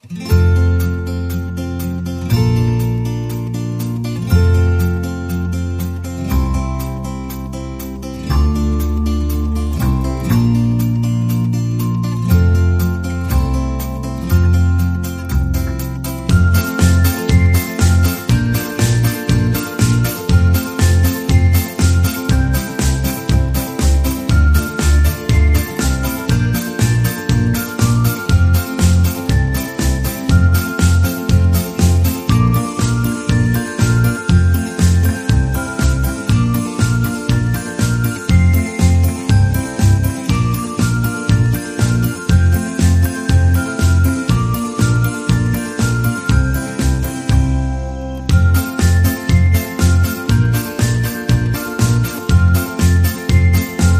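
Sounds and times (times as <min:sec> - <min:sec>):
upbeat music: 0:00.0 - 0:53.9.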